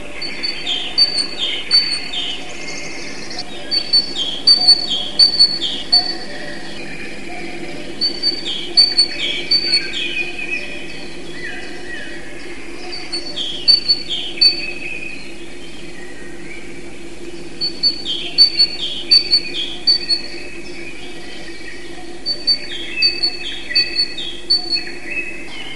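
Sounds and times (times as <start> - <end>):
great tit high repeated chirping calls: 0.1 - 15.9, 17.4 - 25.7.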